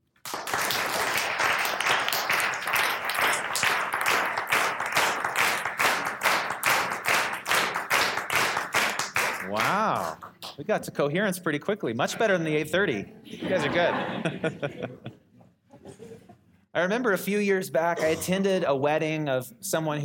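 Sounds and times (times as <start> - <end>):
audience clapping together in rhythm: 0.0 - 10.8
speech: 9.5 - 15.1, 16.8 - 20.0
laughter: 13.3 - 16.4.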